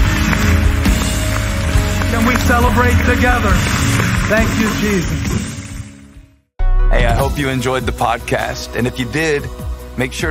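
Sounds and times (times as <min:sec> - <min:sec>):
audience clapping hands: 0:00.0 - 0:06.1
speech: 0:02.6 - 0:05.5, 0:06.9 - 0:10.2.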